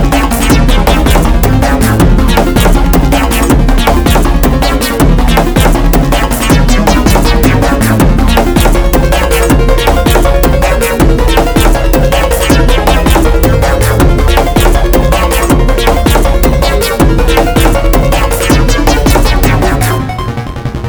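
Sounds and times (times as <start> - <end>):
slower invigorating outer space exploration style music: 0.0 - 20.8.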